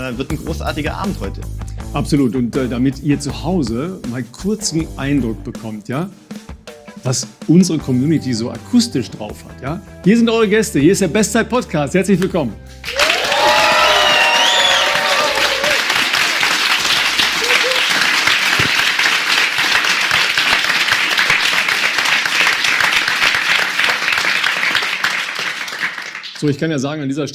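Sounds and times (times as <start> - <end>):
speech: 0.0 - 6.3, 7.0 - 13.0, 26.4 - 27.3
audience applause: 12.9 - 26.5.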